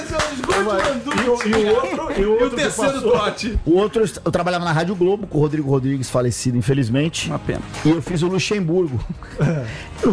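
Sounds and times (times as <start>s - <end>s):
audience applause: 0.0s - 1.9s
speech: 0.3s - 10.1s
laughter: 1.4s - 3.6s, 8.9s - 9.8s.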